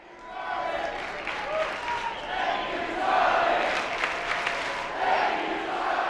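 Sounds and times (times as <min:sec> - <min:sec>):
large crowd chanting in unison at a rally: 0:00.0 - 0:06.0.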